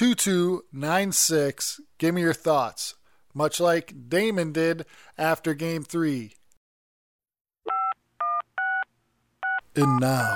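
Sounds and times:
speech: 0:00.0 - 0:06.4, 0:09.8 - 0:10.3
telephone keypad dialing tones: 0:07.7 - 0:08.8.

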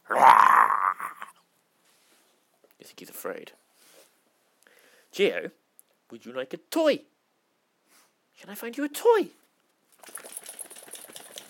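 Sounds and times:
speech: 0:02.8 - 0:03.6, 0:05.2 - 0:07.1, 0:08.4 - 0:09.4
dog shaking its flapping ears: 0:10.0 - 0:11.4.

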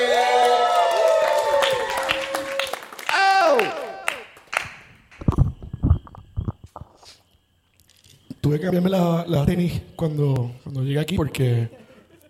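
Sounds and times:
audience applause for a comedian: 0:00.0 - 0:04.9
speech: 0:08.5 - 0:11.8.

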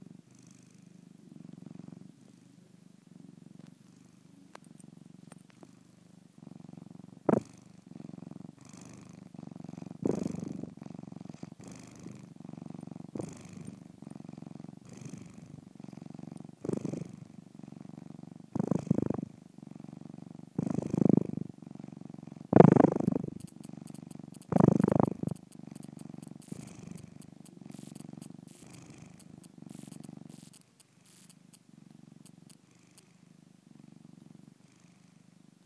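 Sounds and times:
purring: 0:00.0 - 0:35.6.

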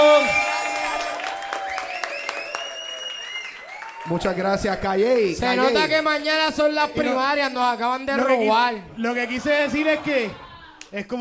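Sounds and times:
audience applause: 0:00.0 - 0:05.2
speech: 0:04.1 - 0:11.2.

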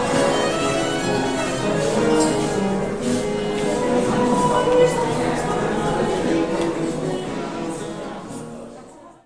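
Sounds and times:
baroque musicians playing: 0:00.0 - 0:08.4
loud soprano singing: 0:03.8 - 0:07.6.

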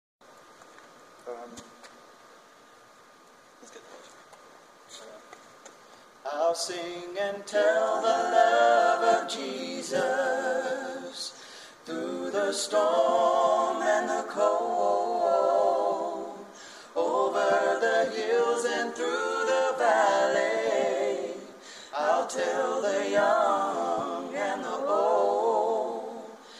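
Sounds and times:
a cappella chorus singing: 0:06.3 - 0:26.5.

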